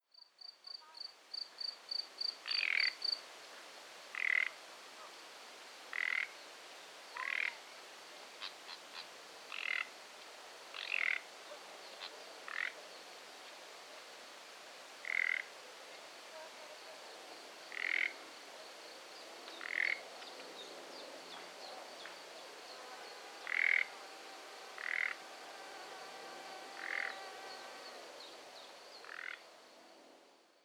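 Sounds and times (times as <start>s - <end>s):
Common nightingale croaking calls: 2.2s - 3.2s, 4.2s - 4.6s, 5.9s - 6.4s, 7.2s - 7.6s, 8.4s - 9.9s, 10.7s - 13.1s, 15.0s - 15.5s, 17.7s - 18.3s, 19.2s - 20.7s, 21.3s - 29.8s.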